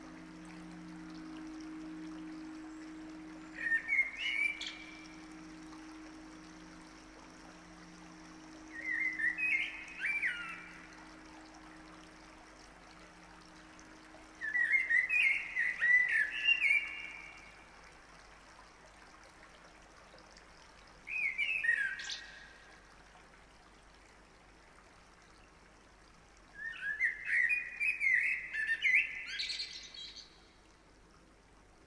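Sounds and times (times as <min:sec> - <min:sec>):
bird song of whistled warbling notes: 0:00.0 - 0:17.7, 0:21.1 - 0:22.6, 0:26.6 - 0:30.5
constant low mechanical hum: 0:00.0 - 0:26.5.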